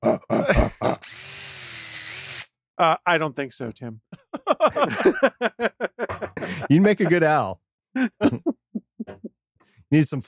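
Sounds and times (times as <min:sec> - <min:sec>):
person grunting: 0:00.0 - 0:01.1
laughter: 0:00.4 - 0:01.0, 0:04.2 - 0:09.2
speech: 0:02.8 - 0:05.8, 0:06.4 - 0:08.5, 0:09.9 - 0:10.2.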